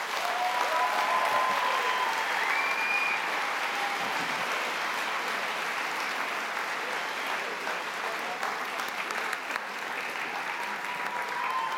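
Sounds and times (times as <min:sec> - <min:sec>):
audience applause: 0:00.0 - 0:11.7
whistles and cheers: 0:00.2 - 0:04.2, 0:10.5 - 0:11.7.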